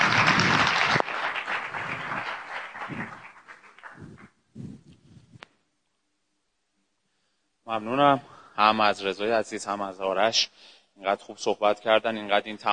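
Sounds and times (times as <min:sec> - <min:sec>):
audience applause: 0:00.0 - 0:04.4
speech: 0:07.7 - 0:12.7.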